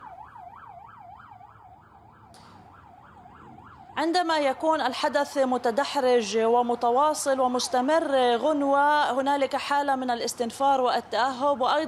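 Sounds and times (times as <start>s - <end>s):
air raid warning sirens: 0.0s - 9.3s
speech: 4.0s - 11.8s.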